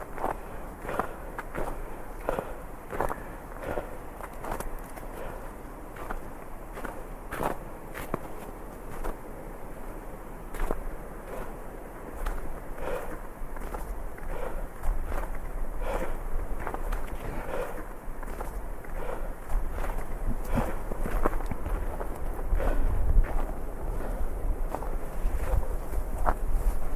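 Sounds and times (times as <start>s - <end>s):
footsteps crunching through snow: 0.0s - 26.9s
wind: 0.0s - 26.9s.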